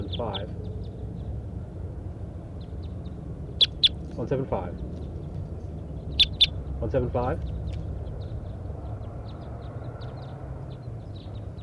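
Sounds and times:
flock of wild birds chirping overhead: 0:00.0 - 0:11.6
speech: 0:00.2 - 0:00.7, 0:04.2 - 0:05.0, 0:06.8 - 0:07.6.

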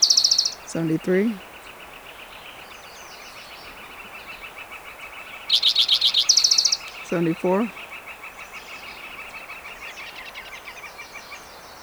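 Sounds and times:
spotted towhee singing: 0:00.7 - 0:01.4, 0:07.1 - 0:07.7
speech: 0:00.7 - 0:01.5, 0:07.1 - 0:07.8.

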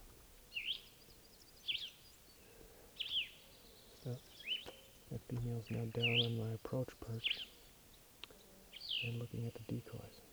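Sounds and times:
hiss: 0:00.0 - 0:10.3
wild bird calling: 0:01.6 - 0:10.3
speech: 0:04.0 - 0:04.4, 0:05.1 - 0:07.5, 0:09.0 - 0:10.3.

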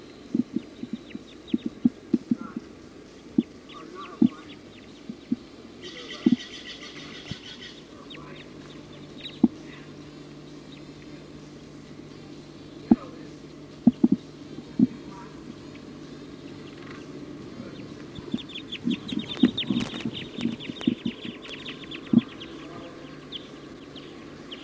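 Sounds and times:
flock of Type 2 birds calling: 0:00.0 - 0:24.6.

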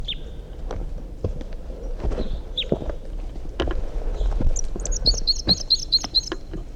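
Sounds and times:
wild bird singing a brisk phrase of quick high chirps: 0:00.0 - 0:00.5, 0:01.8 - 0:02.8, 0:04.2 - 0:06.7
irregular thumps like footsteps: 0:00.6 - 0:05.7.

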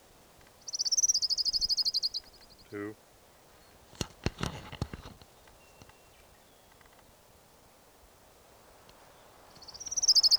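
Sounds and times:
orange ground warbler song: 0:00.0 - 0:03.8, 0:05.2 - 0:07.0, 0:08.9 - 0:10.3
speech: 0:02.7 - 0:03.1.

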